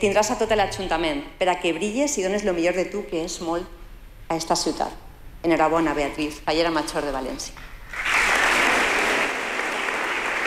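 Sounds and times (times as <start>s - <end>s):
speech: 0.0s - 8.1s
audience applause after speech: 7.9s - 10.4s.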